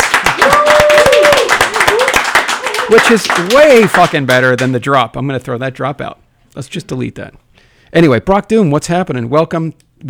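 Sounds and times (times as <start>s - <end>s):
live audience applause: 0.0s - 4.8s
speech: 2.9s - 10.0s.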